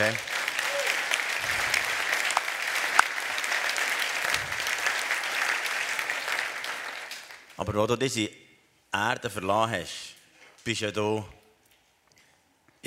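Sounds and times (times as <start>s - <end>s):
speech: 0.0s - 0.3s, 7.6s - 11.4s
audience applause: 0.0s - 7.6s.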